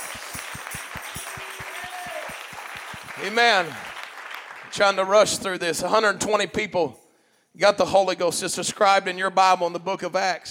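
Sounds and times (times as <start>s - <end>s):
audience clapping hands: 0.0s - 5.6s
speech: 3.2s - 3.9s, 4.7s - 7.0s, 7.6s - 10.5s.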